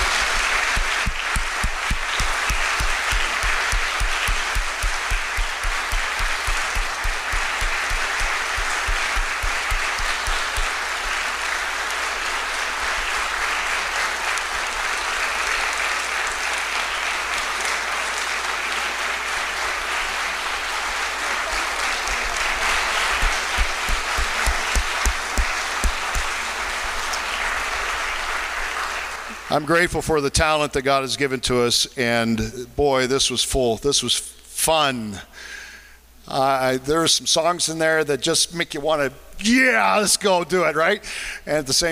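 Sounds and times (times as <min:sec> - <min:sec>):
audience applause: 0:00.0 - 0:29.7
speech: 0:29.6 - 0:35.6, 0:36.3 - 0:41.9.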